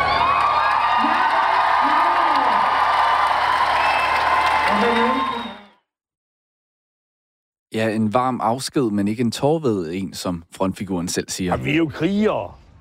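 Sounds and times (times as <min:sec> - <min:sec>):
concert crowd applauding and cheering farewell: 0:00.0 - 0:05.8
speech: 0:07.8 - 0:12.6.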